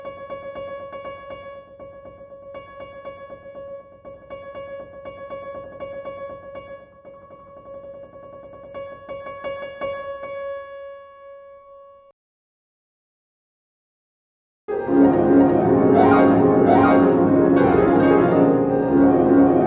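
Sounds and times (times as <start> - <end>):
variations on a waltz: 14.7 - 19.6.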